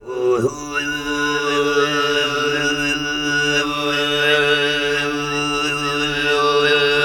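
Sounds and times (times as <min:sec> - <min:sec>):
Tuvan group singing: 0:00.1 - 0:07.0.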